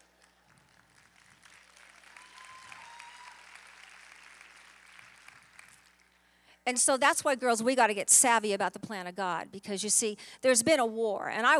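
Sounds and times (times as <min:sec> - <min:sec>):
weak audience clapping: 0:00.0 - 0:06.4
speech: 0:06.7 - 0:11.5.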